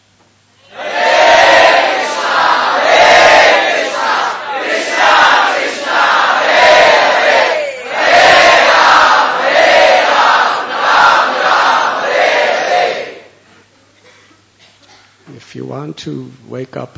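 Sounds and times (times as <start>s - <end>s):
crowd chanting the name of the Lord in unison: 0.6s - 13.3s
speech: 15.8s - 16.9s.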